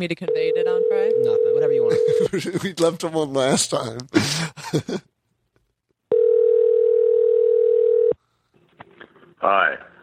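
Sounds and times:
speech: 0.0 - 5.1, 9.4 - 9.9
telephone ringing tone: 0.3 - 2.2, 6.1 - 8.2.

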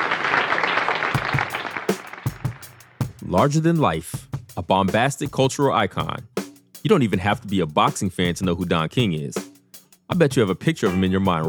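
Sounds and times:
audience applause welcoming Don King onto a TV show: 0.0 - 2.8
speech: 3.3 - 9.4, 10.1 - 11.4.

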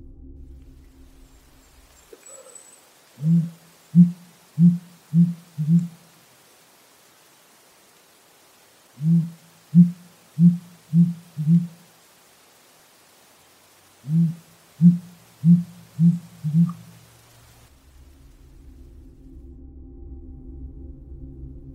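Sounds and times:
faint steady hiss: 0.0 - 19.5
sooty grouse giving deep low hoots: 2.0 - 6.1, 9.0 - 11.8, 14.0 - 17.1.

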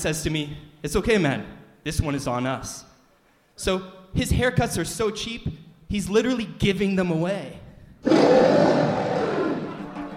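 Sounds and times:
speech: 0.0 - 2.9, 3.6 - 9.1
bear roar sound effect: 8.0 - 9.8.

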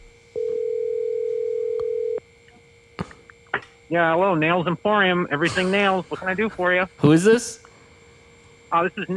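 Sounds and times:
telephone dial tone from a call: 0.3 - 2.3
speech: 3.9 - 7.7, 8.7 - 9.1.

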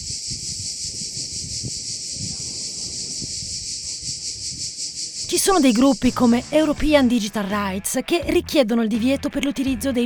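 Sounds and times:
cicadas chirping: 0.0 - 6.7
speech: 5.3 - 10.0.

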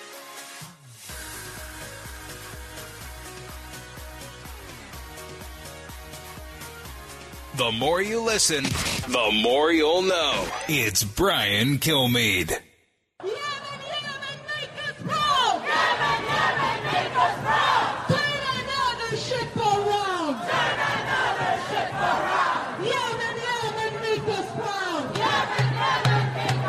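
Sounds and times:
speech: 7.6 - 12.6
large crowd of protesters chanting and shouting: 7.6 - 26.6.

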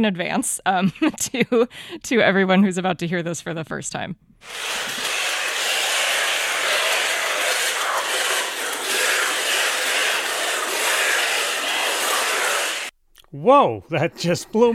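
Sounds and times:
speech: 0.0 - 5.2, 13.3 - 14.7
several hundred birds flying inside a cave: 4.6 - 12.9.

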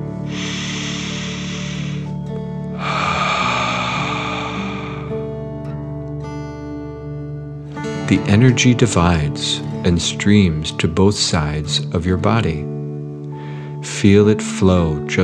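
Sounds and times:
deep breaths in and out: 0.0 - 6.0, 13.3 - 13.8
soft steady musical drone: 0.0 - 6.4
speech: 8.1 - 12.8, 13.8 - 15.2.

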